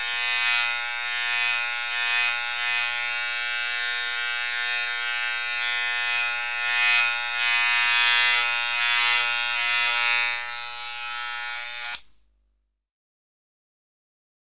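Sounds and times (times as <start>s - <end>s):
electric shaver: 0.0s - 12.1s.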